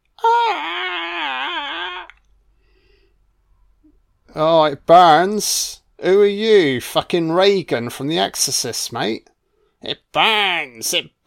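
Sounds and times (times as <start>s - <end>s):
Gollum voice whining in pain: 0.2s - 2.2s
speech: 4.4s - 11.2s.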